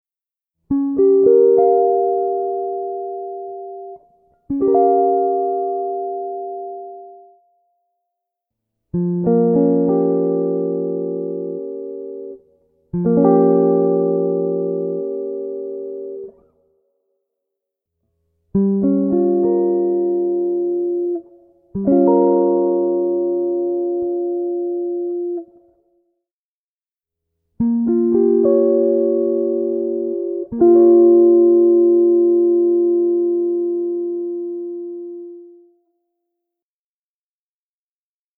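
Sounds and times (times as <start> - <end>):
C7sus4b9 chord inversions: 0.7 - 7.4, 9.0 - 16.4, 18.6 - 25.5, 27.6 - 35.6.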